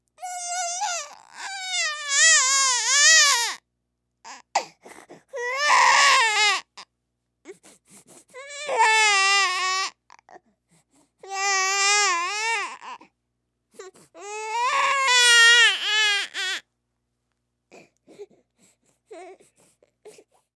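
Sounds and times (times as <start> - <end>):
human baby crying: 0.2 - 3.6, 5.3 - 6.8, 8.4 - 10.3, 11.2 - 13.0, 13.8 - 16.6.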